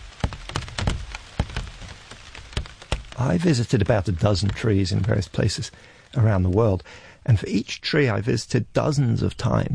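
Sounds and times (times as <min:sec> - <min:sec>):
large raindrops falling on plant leaves: 0:00.0 - 0:09.7
speech: 0:03.2 - 0:09.7.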